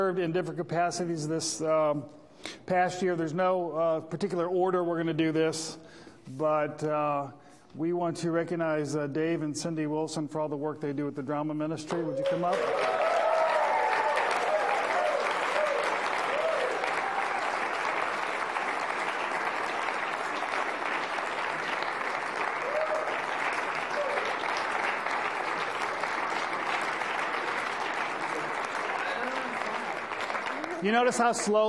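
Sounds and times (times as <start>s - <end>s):
speech: 0.0s - 13.0s, 30.9s - 31.6s
audience applause: 12.1s - 31.6s.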